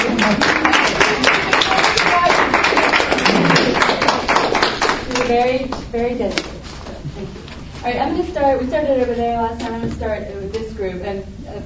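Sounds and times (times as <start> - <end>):
audience applauding: 0.0 - 5.4
speech: 0.3 - 0.6, 5.3 - 11.6.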